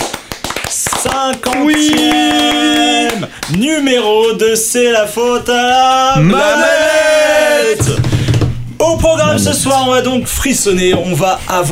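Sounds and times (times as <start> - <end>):
people clapping: 0.0 - 4.4
speech: 1.1 - 2.5, 3.2 - 8.0, 8.8 - 11.7.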